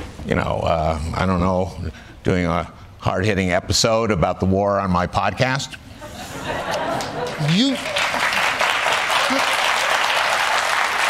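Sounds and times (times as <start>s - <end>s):
speech: 0.2s - 5.8s, 7.4s - 8.0s
laughter: 6.0s - 9.8s
studio audience applause: 6.9s - 11.0s.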